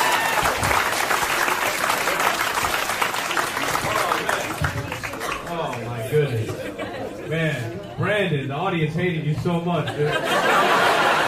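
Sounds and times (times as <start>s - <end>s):
audience applause at a Chicago comedy roast battle: 0.0s - 6.0s
laughter: 6.0s - 7.7s, 9.8s - 11.2s
speech: 8.2s - 10.7s.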